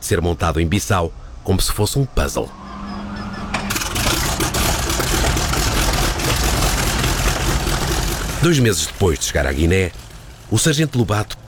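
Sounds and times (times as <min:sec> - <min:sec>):
speech: 0:00.0 - 0:02.8, 0:08.4 - 0:11.4
T6 propeller airplane engine roaring: 0:02.6 - 0:10.6.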